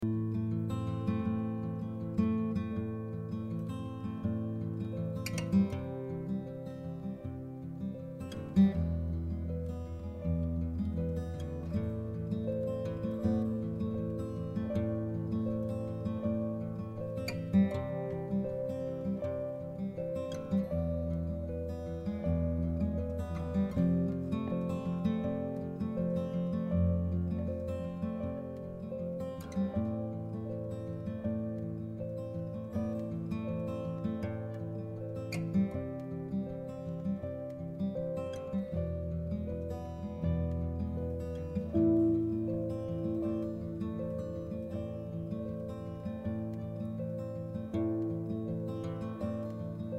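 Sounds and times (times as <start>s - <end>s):
music: 0.0s - 49.9s.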